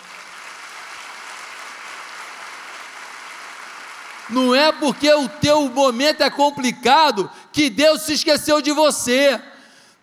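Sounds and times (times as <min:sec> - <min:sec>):
audience applause: 0:00.0 - 0:04.8
speech: 0:04.3 - 0:09.5.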